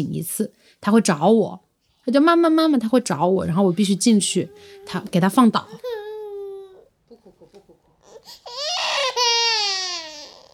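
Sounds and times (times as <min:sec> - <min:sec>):
speech: 0:00.0 - 0:06.0
toddler crying in a tantrum: 0:05.7 - 0:06.9, 0:08.0 - 0:10.5.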